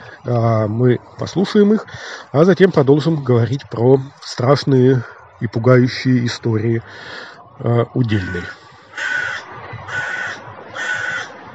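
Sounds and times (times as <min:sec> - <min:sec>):
speech: 0:00.2 - 0:08.6
crow cawing overhead: 0:08.1 - 0:11.4.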